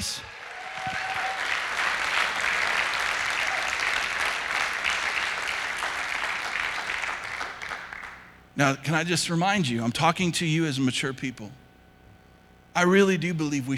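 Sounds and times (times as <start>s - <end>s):
audience applause: 0.0s - 8.3s
speech: 8.6s - 11.6s, 12.8s - 13.7s.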